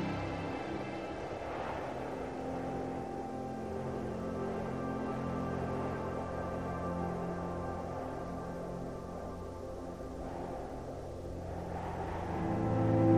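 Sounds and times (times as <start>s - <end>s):
low constant rumble: 0.0s - 13.1s
soft ambient music with sustained tones: 0.0s - 13.1s
wind sweeping through a snowy forest: 0.0s - 13.1s.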